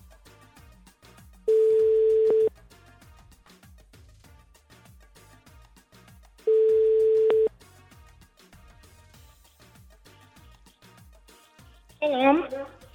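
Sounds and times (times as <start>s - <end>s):
telephone ringing tone while calling a prize winner: 1.5s - 2.5s, 6.5s - 7.5s.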